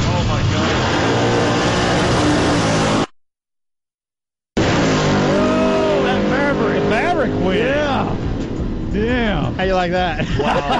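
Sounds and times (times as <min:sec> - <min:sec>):
Ford Maverick and old Camaro engines roaring in a drag race: 0:00.0 - 0:03.1, 0:04.6 - 0:10.7
engine revving: 0:00.0 - 0:03.1, 0:04.6 - 0:09.7
speech: 0:09.8 - 0:10.7
laughter: 0:10.0 - 0:10.7.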